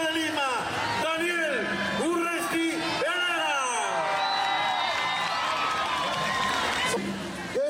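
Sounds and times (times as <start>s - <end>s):
crowd cheering: 0.0s - 7.6s
crowd applauding: 3.0s - 7.6s.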